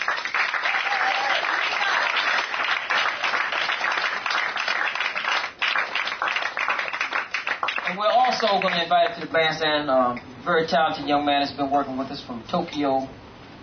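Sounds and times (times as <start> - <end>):
audience applause: 0.0 - 9.2
speech: 8.0 - 13.2.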